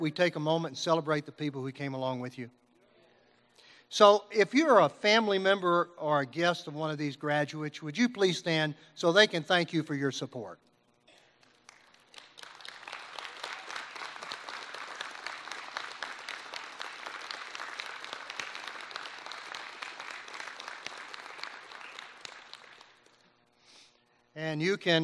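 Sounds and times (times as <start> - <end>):
speech: 0.0 - 2.6, 3.9 - 10.7, 24.5 - 25.0
audience applause for families: 11.7 - 23.1.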